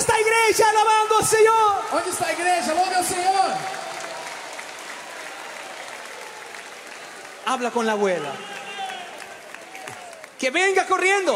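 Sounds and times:
speech: 0.6 - 3.9, 7.5 - 8.6, 10.4 - 11.3
sustained applause from a large gathering: 1.4 - 11.3.

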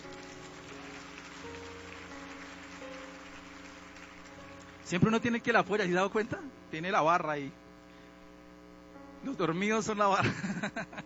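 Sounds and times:
audience applause: 0.0 - 5.6
speech: 4.9 - 7.6, 9.2 - 11.0.

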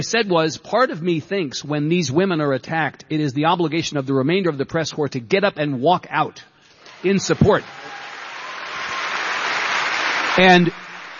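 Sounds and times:
speech: 0.0 - 8.0, 10.4 - 10.8
audience applause: 6.8 - 11.1.

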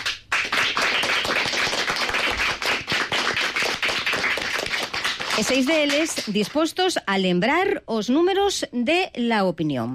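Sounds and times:
schoolchildren applauding in studio: 0.0 - 6.2
speech: 5.4 - 9.9.

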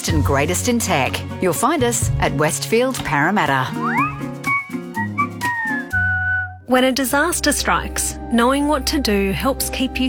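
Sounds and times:
speech: 0.0 - 4.5, 6.7 - 10.0
AusAlert emergency alert tone: 3.8 - 6.2.

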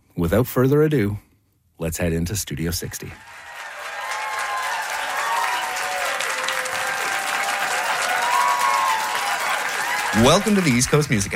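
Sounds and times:
speech: 0.2 - 1.2, 1.8 - 3.4, 10.2 - 11.3
audience cheers: 3.2 - 11.3
live studio audience at a music show clapping: 3.2 - 11.3.

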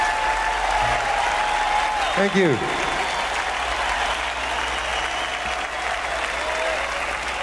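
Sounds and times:
concert audience applause: 0.0 - 7.4
speech: 2.2 - 2.8.

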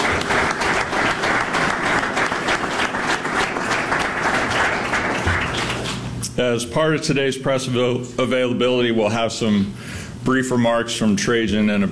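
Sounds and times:
audience applause at a Detroit Pistons press event: 0.0 - 6.1
speech: 6.4 - 11.9.

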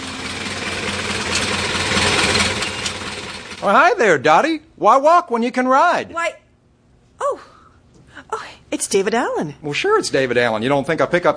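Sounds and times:
Model A coupe engine idling: 0.0 - 3.6
speech: 3.6 - 6.4, 7.2 - 7.5, 8.7 - 11.3.

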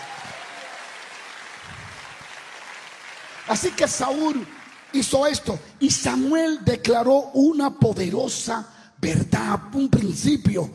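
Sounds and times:
audience applauding: 0.0 - 5.6
speech: 3.5 - 10.7.

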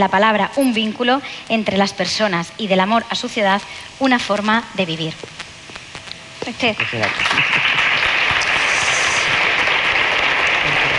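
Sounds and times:
speech: 0.0 - 5.4, 6.4 - 8.0
theatre audience applause: 7.0 - 10.9.

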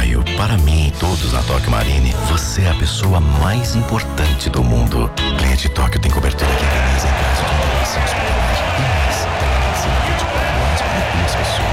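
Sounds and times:
speech: 0.4 - 9.0
applause from the stands at SoFi Stadium in Los Angeles: 6.4 - 11.7.

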